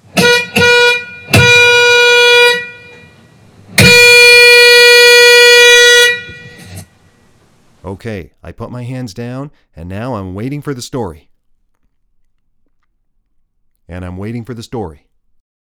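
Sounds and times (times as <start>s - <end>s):
bus horn blasts: 0.0s - 6.9s
speech: 8.0s - 11.3s, 13.9s - 15.1s.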